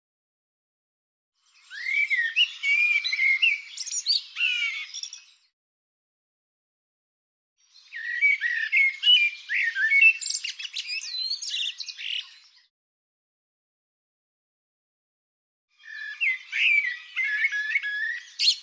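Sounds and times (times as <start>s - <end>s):
bird song: 1.4s - 5.6s, 7.6s - 12.7s, 15.7s - 18.6s.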